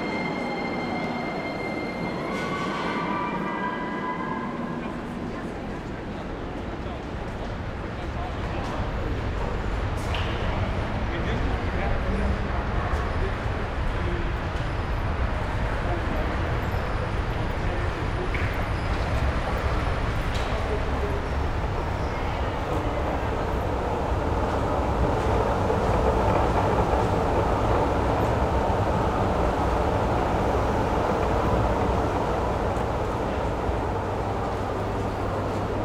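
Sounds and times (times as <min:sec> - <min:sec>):
city street ambience: 0:00.0 - 0:35.8.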